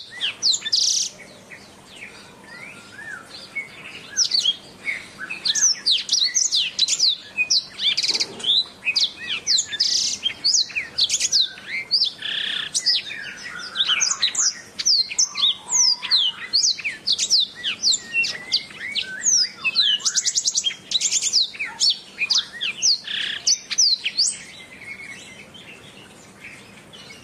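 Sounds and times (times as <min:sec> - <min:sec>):
Oriental magpie-robin in sustained song: 0:00.0 - 0:27.2.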